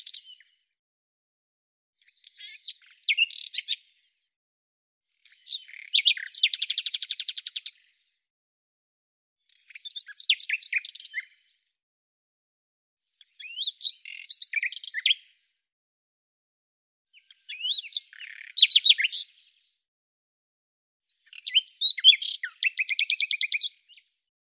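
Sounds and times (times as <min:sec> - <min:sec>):
bird song: 0:00.0 - 0:00.8, 0:02.0 - 0:04.4, 0:05.1 - 0:08.3, 0:09.4 - 0:11.8, 0:13.0 - 0:15.7, 0:17.1 - 0:19.9, 0:21.0 - 0:24.3.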